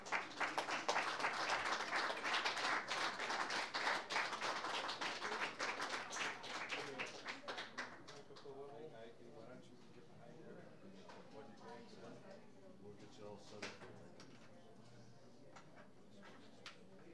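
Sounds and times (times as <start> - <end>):
audience applause welcoming a songwriter to the stage: 0.0 - 8.0.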